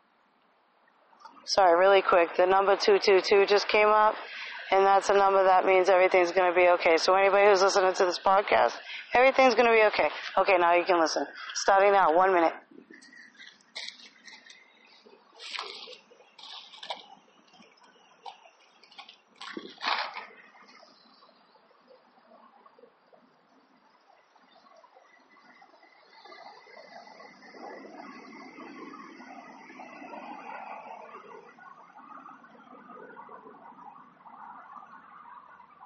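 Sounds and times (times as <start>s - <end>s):
running water: 1.0s - 23.4s
speech: 1.4s - 12.6s.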